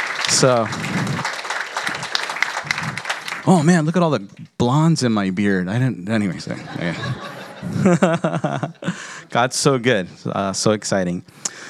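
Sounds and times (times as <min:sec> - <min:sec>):
audience applauding: 0:00.0 - 0:03.8
speech: 0:00.3 - 0:01.4, 0:03.4 - 0:11.6
laughter: 0:06.4 - 0:09.6.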